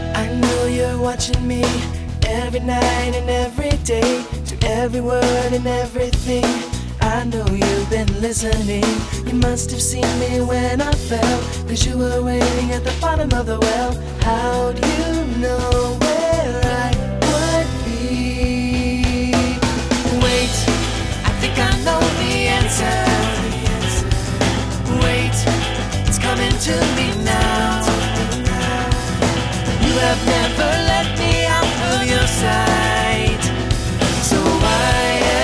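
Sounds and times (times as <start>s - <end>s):
two voices singing: 0.1s - 35.4s.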